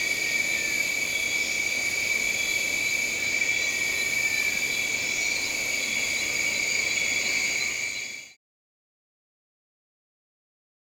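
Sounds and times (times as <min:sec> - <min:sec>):
crickets trilling in a steady high chorus: 0:00.0 - 0:08.4.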